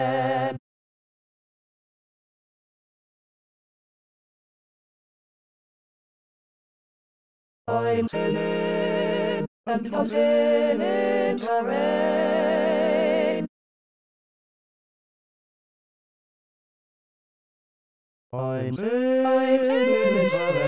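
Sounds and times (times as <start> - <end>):
SATB choir singing in E flat: 7.7 - 13.5, 18.8 - 20.6.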